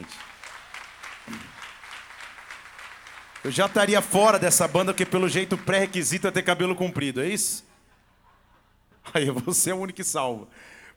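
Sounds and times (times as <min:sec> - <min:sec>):
crowd applauding: 0:00.0 - 0:07.2
speech: 0:03.4 - 0:07.7, 0:09.0 - 0:10.8.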